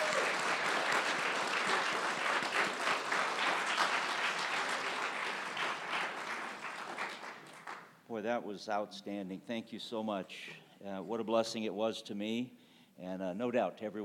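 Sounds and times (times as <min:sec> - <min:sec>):
audience applause: 0:00.0 - 0:07.8
speech: 0:08.2 - 0:14.0.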